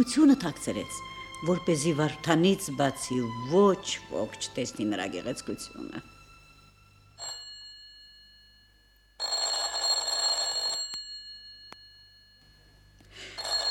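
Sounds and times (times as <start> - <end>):
speech: 0.0 - 6.1
telephone bell ringing: 7.2 - 13.6.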